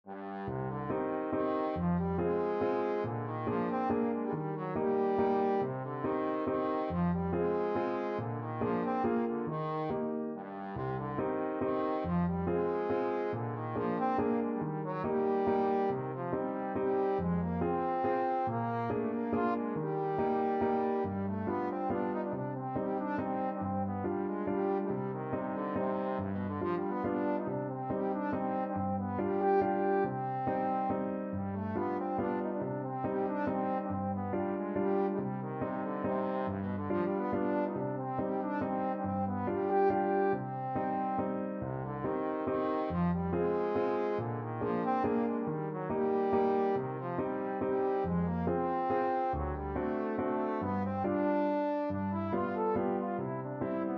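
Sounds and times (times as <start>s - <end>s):
trombone: 0.1s - 53.9s.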